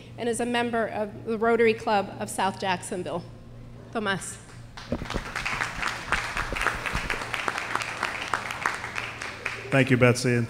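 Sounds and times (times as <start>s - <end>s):
speech: 0.2s - 5.3s, 9.7s - 10.4s
audience applause: 4.8s - 10.4s.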